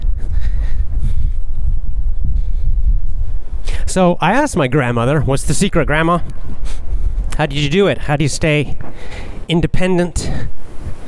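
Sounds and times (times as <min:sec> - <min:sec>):
wind blowing on a rooftop: 0:00.0 - 0:11.0
speech: 0:03.9 - 0:06.5, 0:07.4 - 0:10.5.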